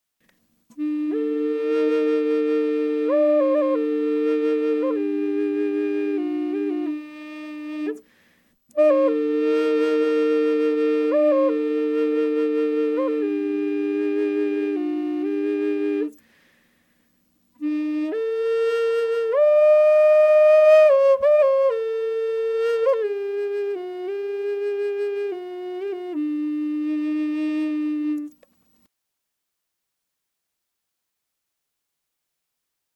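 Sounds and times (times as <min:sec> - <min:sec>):
flute drone in E flat without effects: 0:00.7 - 0:08.0, 0:08.7 - 0:16.2, 0:17.6 - 0:28.4.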